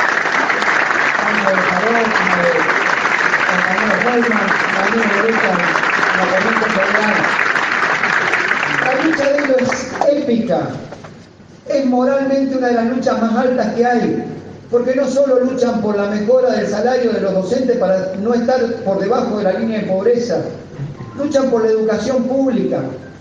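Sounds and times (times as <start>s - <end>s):
audience applause: 0.0s - 10.0s
speech: 3.8s - 7.4s, 8.8s - 11.1s, 11.7s - 20.6s, 21.2s - 23.0s.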